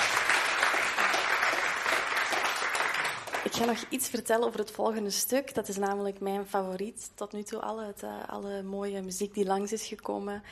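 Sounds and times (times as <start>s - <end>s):
audience applause: 0.0s - 3.9s
speech: 3.5s - 10.5s.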